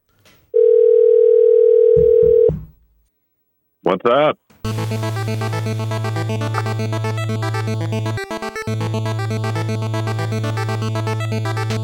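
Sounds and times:
telephone dial tone of outgoing call: 0.6s - 2.5s
soft low thumps: 2.0s - 2.8s
speech: 4.0s - 11.8s.

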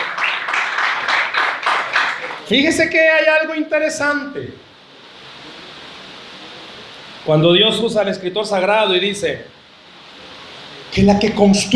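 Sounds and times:
audience applauding: 0.0s - 2.5s
speech: 2.5s - 4.7s, 7.2s - 9.6s, 10.9s - 11.7s.

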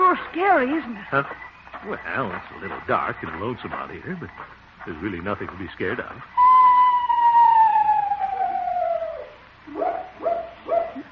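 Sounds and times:
speech: 0.2s - 6.4s
owl hooting or screeching: 6.4s - 11.0s.

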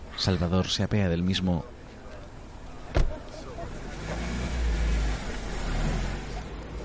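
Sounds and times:
street noise: 0.0s - 6.8s
speech: 0.2s - 1.8s
taxi engine rumbling: 1.8s - 6.8s.

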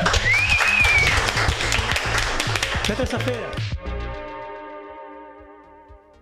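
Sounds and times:
round of applause: 0.0s - 3.7s
speech: 2.9s - 4.0s.

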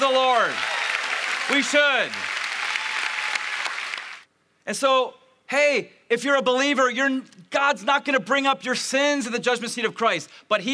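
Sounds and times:
people clapping: 0.0s - 4.3s
speech: 1.5s - 2.3s, 4.7s - 10.7s.

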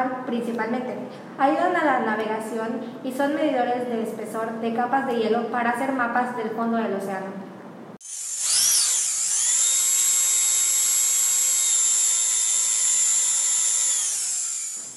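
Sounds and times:
speech: 0.3s - 7.5s
dental drill whirring: 8.0s - 14.9s.

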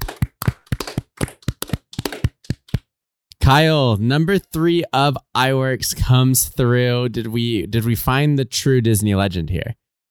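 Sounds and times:
hand claps: 0.0s - 2.9s
speech: 3.5s - 9.8s.

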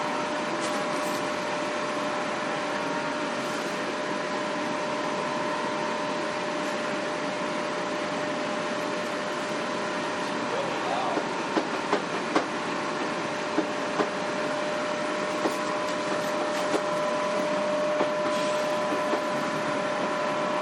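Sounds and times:
monorail train running: 0.0s - 20.6s
clicks and clacks of monorail train: 11.6s - 12.5s.

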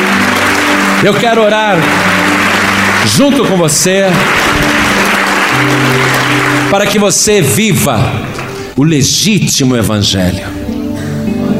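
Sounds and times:
church congregation applauding: 0.0s - 8.8s
steady low musical tones: 0.0s - 11.5s
speech: 1.0s - 2.2s, 3.0s - 10.7s.

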